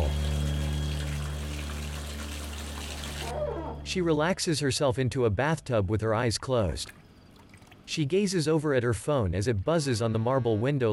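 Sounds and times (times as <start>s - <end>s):
water trickling from a waterfall faucet: 0.0s - 3.3s, 6.9s - 7.9s
speech: 3.9s - 7.0s, 7.9s - 10.9s.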